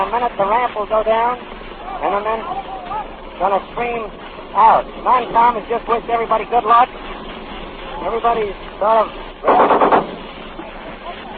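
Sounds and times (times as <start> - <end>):
speech: 0.1 - 7.2, 8.0 - 10.1
machine gun firing a burst of shots: 9.4 - 10.3.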